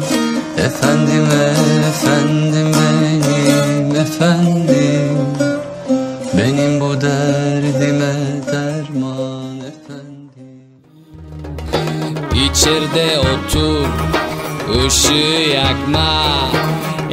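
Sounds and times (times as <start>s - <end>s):
person singing: 0.0s - 17.1s.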